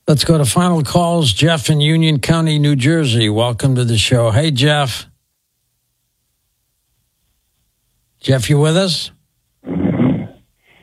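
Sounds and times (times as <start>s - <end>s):
speech: 0.1s - 5.1s, 8.2s - 9.8s
caller snoring over telephone line: 9.6s - 10.4s.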